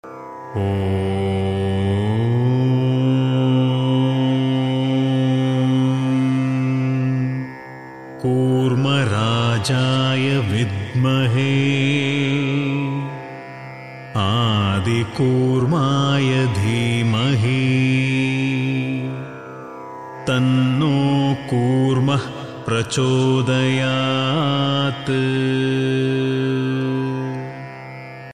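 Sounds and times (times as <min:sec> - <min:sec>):
mantra chanting: 0:00.5 - 0:07.5, 0:08.2 - 0:13.5, 0:14.1 - 0:28.3.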